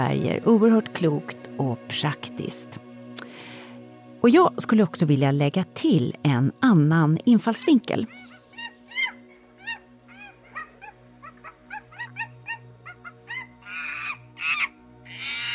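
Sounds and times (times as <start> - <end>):
speech: 0.0 - 2.9, 4.2 - 8.2
small chimpanzee hooting and screeching: 8.0 - 15.5.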